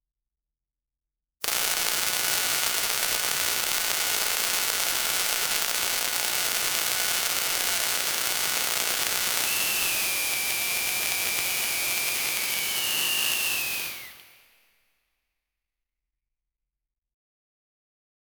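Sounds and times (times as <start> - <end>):
electric sparks in a fuse box: 1.4 - 14.3.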